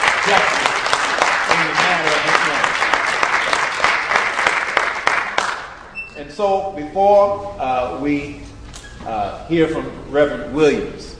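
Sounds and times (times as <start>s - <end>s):
applause: 0.0s - 5.8s
speech: 6.4s - 8.4s, 9.0s - 11.1s.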